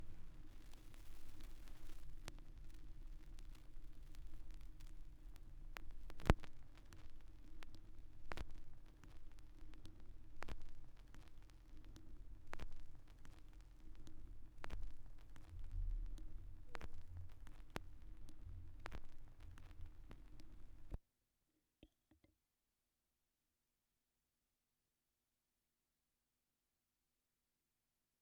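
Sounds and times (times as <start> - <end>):
vinyl record noise: 0.0 - 21.0.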